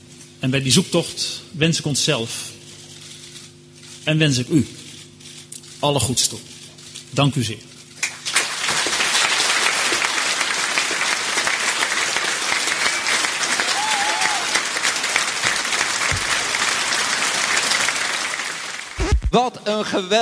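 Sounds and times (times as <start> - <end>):
speech: 0.4 - 2.6, 4.0 - 4.8, 5.8 - 7.7, 19.3 - 20.1
crowd applause and cheering at Dutch CDA party election-night gathering: 8.1 - 19.3.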